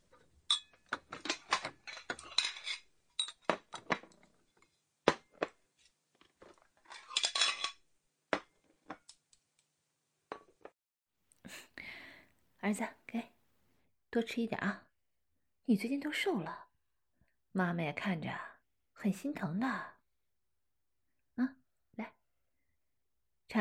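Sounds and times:
bowls and chopsticks clattering onto a table: 0.4s - 4.0s, 6.4s - 7.8s
speech: 12.7s - 13.3s, 14.1s - 14.8s, 15.7s - 16.6s, 17.6s - 19.9s, 21.4s - 22.1s.

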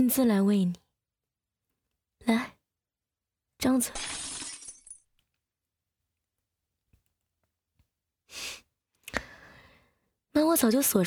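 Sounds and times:
speech: 0.0s - 0.8s, 2.2s - 2.6s, 3.6s - 4.3s, 10.4s - 11.0s
glass smashing: 4.0s - 5.0s.

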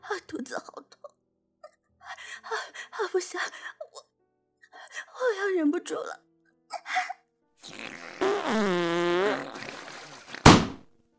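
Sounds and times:
speech: 0.2s - 1.0s, 2.4s - 3.8s, 5.2s - 6.2s
buzzy sputtering fart: 7.6s - 10.8s.

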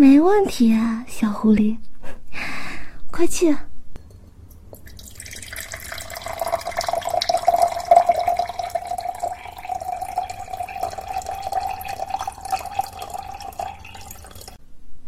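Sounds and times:
speech: 0.0s - 2.6s, 3.2s - 3.7s
pouring a glass of water: 4.5s - 14.6s.

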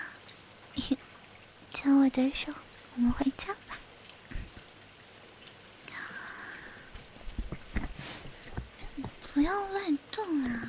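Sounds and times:
heavy rain pouring down: 0.0s - 10.6s
speech: 1.8s - 3.7s, 9.4s - 10.6s.

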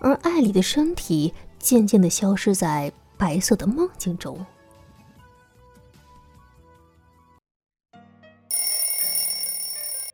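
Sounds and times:
speech: 0.0s - 4.6s
alarm clock ringing: 8.5s - 10.1s.

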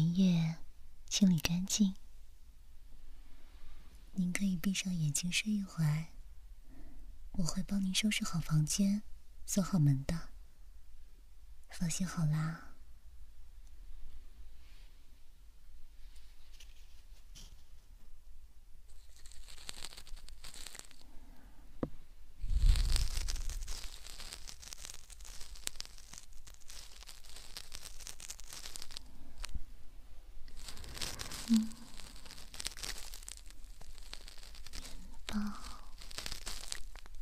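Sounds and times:
speech: 1.1s - 2.0s, 4.2s - 6.1s, 7.4s - 10.3s, 11.7s - 12.7s
rustling: 13.6s - 18.2s, 18.9s - 37.2s
ASMR ear canal scraping: 18.9s - 21.0s, 22.4s - 29.7s, 30.4s - 37.2s.

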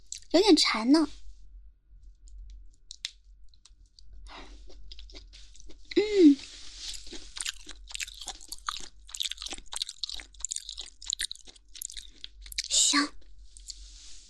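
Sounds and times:
speech: 0.3s - 1.2s
crunchy chewing of lean chicken muscle meat: 4.0s - 5.9s, 6.6s - 14.1s.

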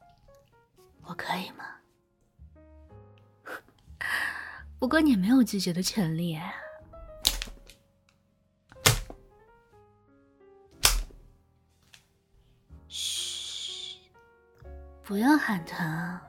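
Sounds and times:
soft sustained music: 0.0s - 16.2s
speech: 1.1s - 1.8s, 4.8s - 6.6s, 15.1s - 16.2s
leather whip cracking onto body: 7.2s - 7.7s, 8.8s - 9.2s, 10.8s - 11.3s
breathy hiss: 12.9s - 14.1s.

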